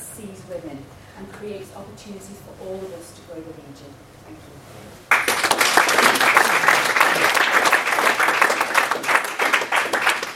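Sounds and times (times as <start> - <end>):
speech: 0.2 - 6.4
audience applause at a mayoral hustings: 5.1 - 10.3.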